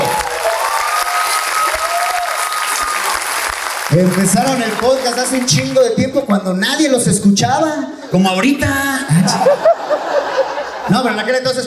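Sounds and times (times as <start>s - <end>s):
crowd audience applause: 0.0s - 6.0s
speech: 4.0s - 10.2s, 10.9s - 11.6s
laughter: 8.9s - 11.3s.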